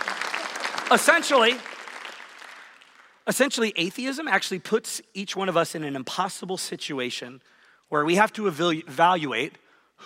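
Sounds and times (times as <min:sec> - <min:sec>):
audience applause: 0:00.0 - 0:03.2
speech: 0:00.9 - 0:01.8, 0:03.3 - 0:10.0.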